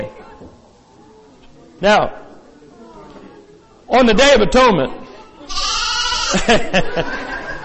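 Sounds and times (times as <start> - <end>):
speech: 1.8 - 2.2, 3.9 - 5.6, 6.3 - 7.2
lamb bleating: 5.5 - 6.4
laughter: 6.1 - 7.6.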